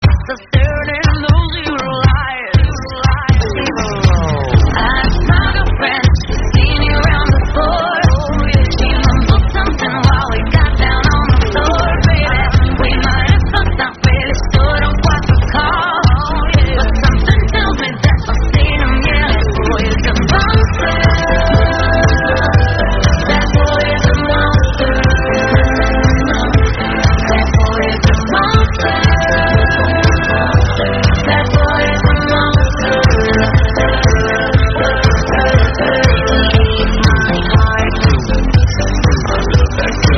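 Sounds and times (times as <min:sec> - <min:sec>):
dance break music: 0:00.0 - 0:40.1.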